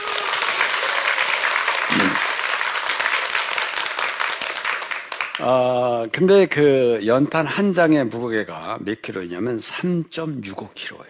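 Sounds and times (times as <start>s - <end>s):
audience applause: 0.0s - 5.7s
speech: 5.4s - 11.0s.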